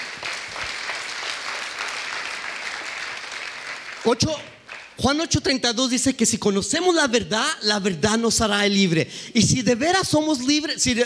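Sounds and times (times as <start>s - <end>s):
crowd clapping: 0.0s - 5.0s
speech: 4.0s - 11.0s.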